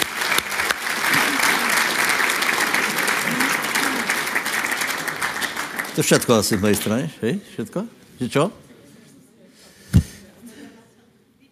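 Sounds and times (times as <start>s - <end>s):
audience applause: 0.0s - 6.8s
speech: 6.0s - 8.6s.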